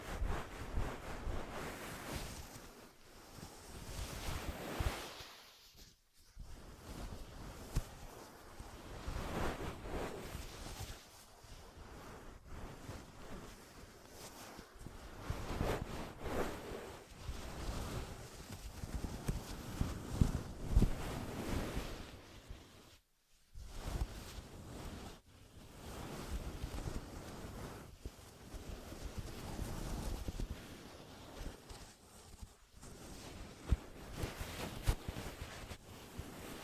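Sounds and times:
ear massage rubbing and rustling: 0.0s - 36.6s.

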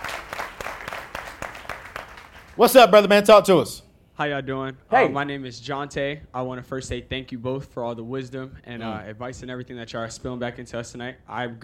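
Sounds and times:
small group clapping for a birthday: 0.0s - 2.9s
speech: 2.6s - 11.6s.

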